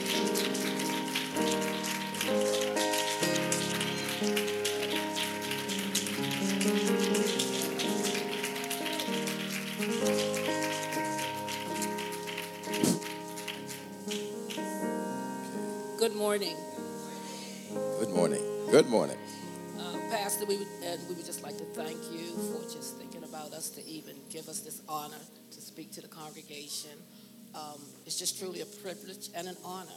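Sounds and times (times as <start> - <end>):
audience clapping hands: 0.0 - 15.6, 18.0 - 20.6
sustained keyboard chords: 0.0 - 24.4
speech: 16.3 - 16.7, 18.7 - 19.2, 20.5 - 29.9.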